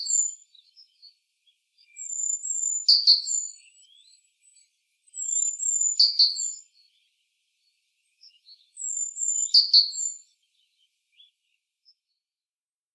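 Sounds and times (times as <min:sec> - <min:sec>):
great tit chirping: 0:00.0 - 0:01.2, 0:01.8 - 0:07.1, 0:08.0 - 0:11.6.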